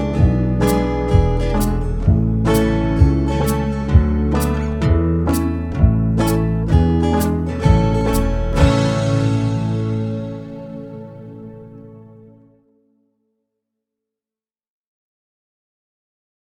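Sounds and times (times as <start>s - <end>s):
slow banjo backing track: 0.0s - 12.3s.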